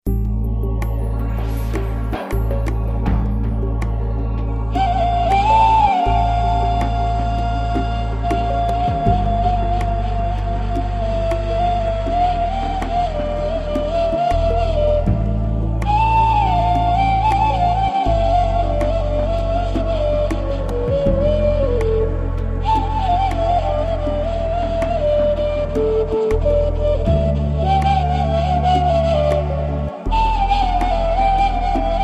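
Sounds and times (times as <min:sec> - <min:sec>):
ney taksim improvisation on a keyboard: 0:00.1 - 0:32.0.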